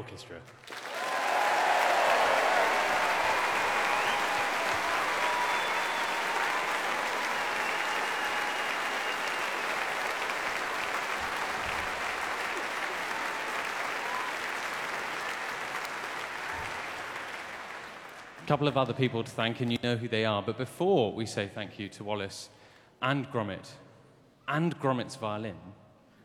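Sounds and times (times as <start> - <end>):
speech: 0.0 - 0.8, 18.5 - 23.8, 24.5 - 25.8
audience applause: 0.6 - 18.8.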